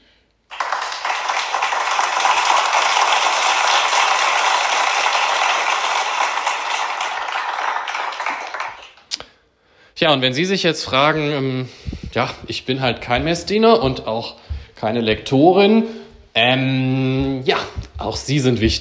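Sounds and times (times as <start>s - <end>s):
audience applause: 0.5s - 9.1s
speech: 10.0s - 18.7s.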